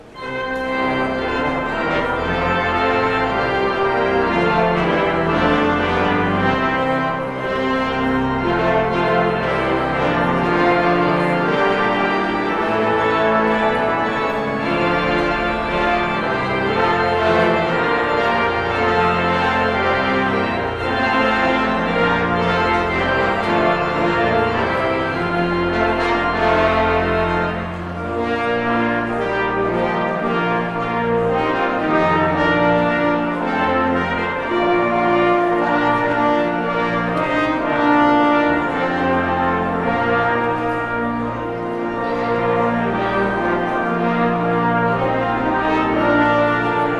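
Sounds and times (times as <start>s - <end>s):
postlude: 0.0s - 46.9s.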